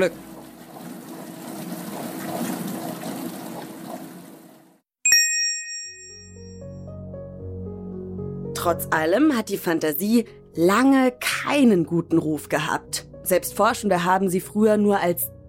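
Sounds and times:
speech: 0.0 - 0.3, 8.6 - 15.3
dishwasher churning and swishing water: 0.0 - 4.8
single bright electronic ding: 5.1 - 6.7.

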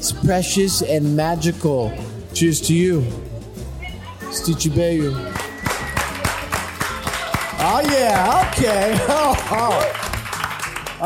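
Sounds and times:
speech: 0.0 - 3.3, 4.3 - 5.4, 7.7 - 10.0
audience slow clap: 5.3 - 11.0.

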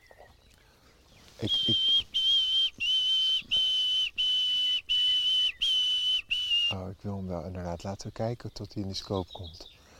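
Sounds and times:
nightingale singing: 0.0 - 9.9
speech: 1.4 - 2.0, 7.0 - 9.8.

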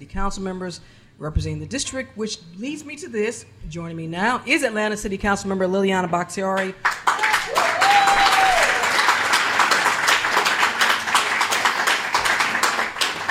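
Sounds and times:
speech: 0.0 - 7.1
audience clapping: 6.8 - 13.2.

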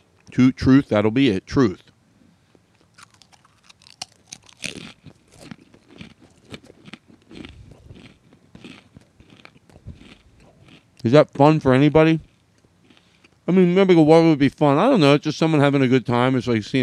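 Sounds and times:
speech: 0.4 - 1.9, 11.0 - 12.3, 13.5 - 16.8
crunching pretzels: 2.5 - 13.5.

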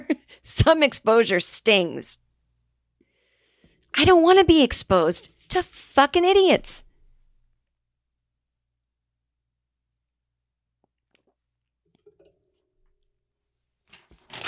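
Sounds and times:
speech: 0.0 - 2.2, 4.0 - 6.9
paper being ripped: 13.8 - 14.4.

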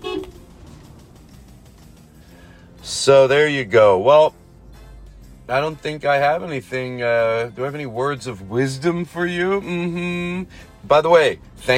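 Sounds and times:
car horn beeping: 0.0 - 0.6
speech: 2.9 - 4.4, 5.5 - 11.7.

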